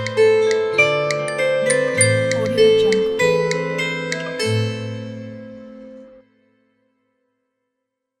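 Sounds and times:
sad fairy music: 0:00.1 - 0:06.2.

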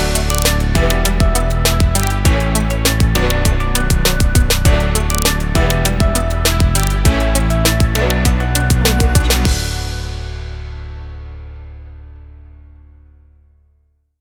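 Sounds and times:
inspirational technology music: 0:00.0 - 0:10.6.

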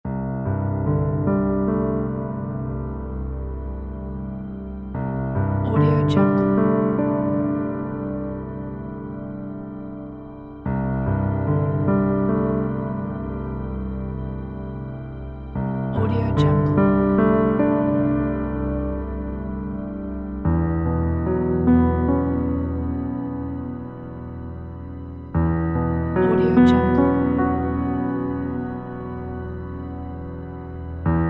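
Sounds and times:
dreamy music: 0:00.1 - 0:31.2.

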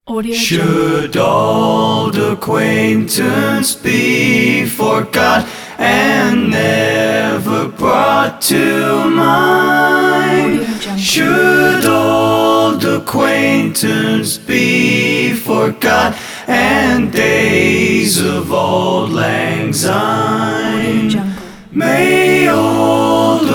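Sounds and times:
a cappella singing: 0:00.1 - 0:23.5.

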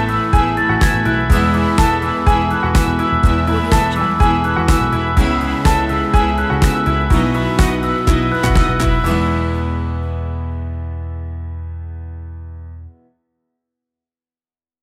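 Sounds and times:
upbeat corporate music: 0:00.0 - 0:10.0.

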